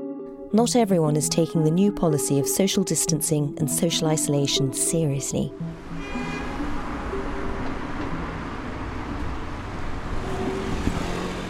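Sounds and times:
speech: 0.5 - 6.4
street traffic: 4.2 - 11.4.

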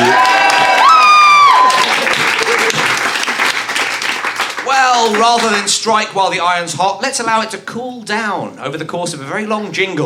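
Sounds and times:
audience applause: 0.0 - 5.8
speech: 5.0 - 10.0.

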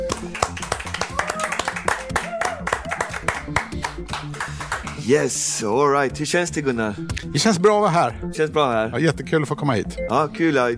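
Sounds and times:
audience applause: 0.0 - 5.0
voices and whoops: 1.0 - 3.3
speech: 5.1 - 10.7.

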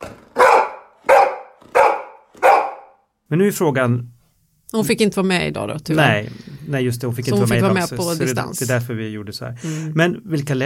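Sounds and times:
happy dog barking: 0.3 - 3.0
speech: 3.3 - 4.1, 4.7 - 10.6.

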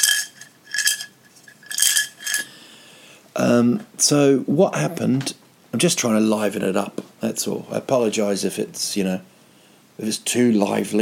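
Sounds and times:
coins being picked up: 0.0 - 2.5
speech: 3.4 - 9.4, 10.0 - 11.0.

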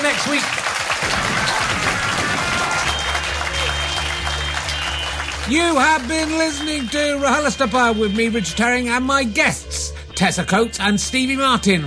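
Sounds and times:
audience applause: 0.0 - 8.2
speech: 0.2 - 1.2, 5.5 - 11.8.

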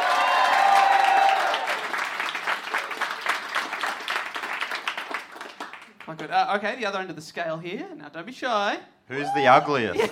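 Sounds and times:
live audience applause: 0.0 - 6.2
speech: 6.1 - 10.1.

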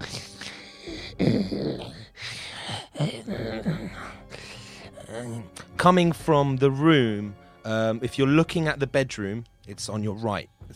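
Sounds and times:
voice imitating heavy breathing: 0.0 - 5.7
speech: 5.3 - 10.7.

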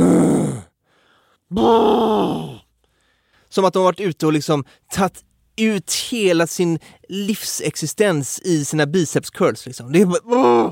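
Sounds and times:
imitated grunting of gym-goers in locker room: 0.0 - 0.7, 1.5 - 2.6, 10.3 - 10.7
speech: 1.5 - 2.5, 3.5 - 10.7.

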